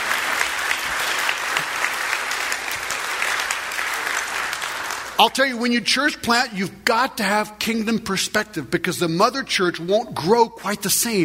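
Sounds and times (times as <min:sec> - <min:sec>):
audience applauding: 0:00.0 - 0:05.2
speech: 0:05.2 - 0:11.2.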